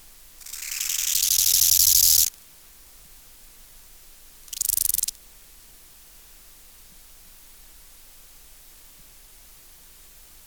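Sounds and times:
bow-winged grasshopper rasping: 0.4s - 2.3s, 4.5s - 5.1s.

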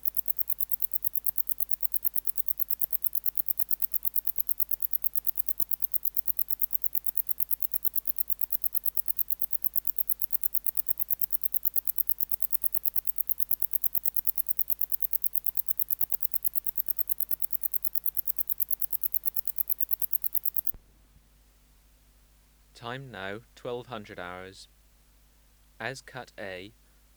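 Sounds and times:
wart-biter stridulating: 0.0s - 20.8s
faint low hum: 0.0s - 27.1s
speech: 22.8s - 24.8s, 25.8s - 27.1s.

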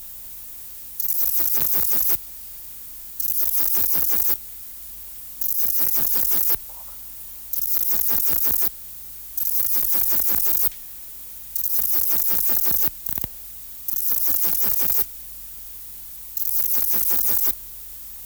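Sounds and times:
bush-cricket song: 0.9s - 18.2s.

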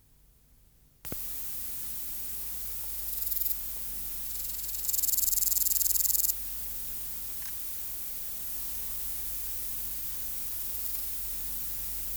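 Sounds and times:
faint background hiss and hum: 0.0s - 12.1s
meadow katydid song: 4.3s - 6.3s.

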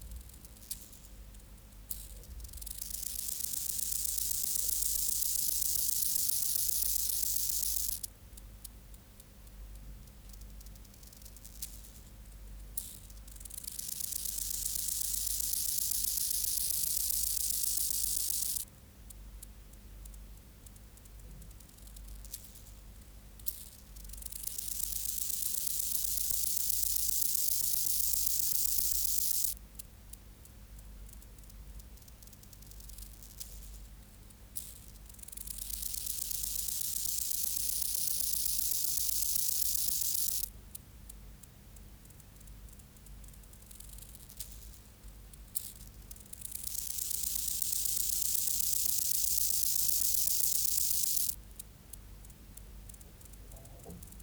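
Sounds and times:
faint ticks: 0.0s - 54.2s
rufous grasshopper hissing buzz: 13.6s - 18.6s, 24.4s - 29.5s, 35.5s - 40.5s, 46.5s - 51.4s.

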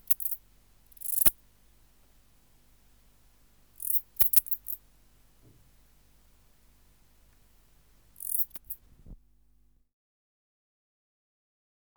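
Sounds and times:
bush-cricket Steropleurus noblei chirp: 0.0s - 2.1s, 2.8s - 8.8s.

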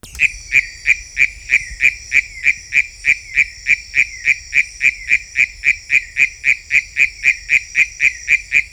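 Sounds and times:
constant high insect buzz: 0.0s - 5.8s
Philautus frog calling: 0.0s - 8.6s.

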